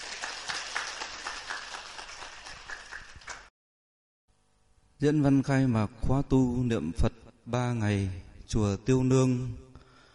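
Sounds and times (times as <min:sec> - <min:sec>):
warm applause: 0:00.0 - 0:03.5
speech: 0:05.0 - 0:09.6.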